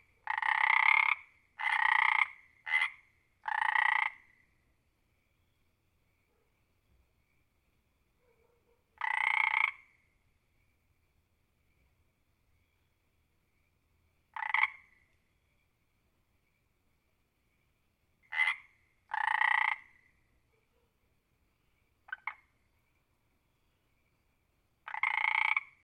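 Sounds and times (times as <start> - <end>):
frog croaking: 0.0 - 4.5, 9.0 - 10.1, 14.3 - 15.1, 18.2 - 20.2, 22.0 - 22.7, 24.8 - 25.8.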